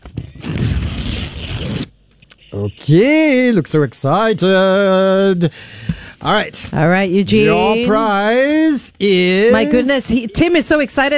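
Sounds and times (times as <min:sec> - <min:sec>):
paper envelope ripped open: 0:00.0 - 0:01.9
speech: 0:02.5 - 0:11.1.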